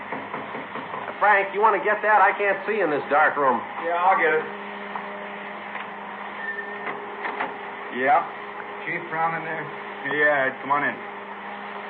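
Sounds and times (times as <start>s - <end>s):
dryer running in a photographic darkroom: 0.0s - 11.8s
speech: 1.2s - 4.6s, 8.0s - 11.1s.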